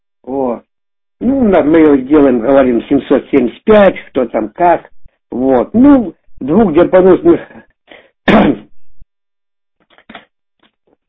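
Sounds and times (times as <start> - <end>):
speech: 1.3 - 7.7, 8.3 - 8.6
throat clearing: 7.4 - 8.7.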